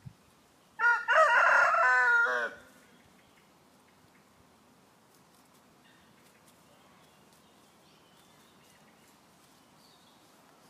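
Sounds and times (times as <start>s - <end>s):
chicken call: 0.8s - 2.8s.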